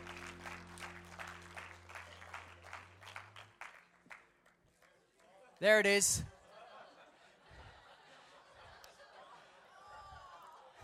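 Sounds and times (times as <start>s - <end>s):
audience applause: 0.0s - 4.6s
speech: 5.6s - 6.4s
laughter: 6.3s - 10.8s.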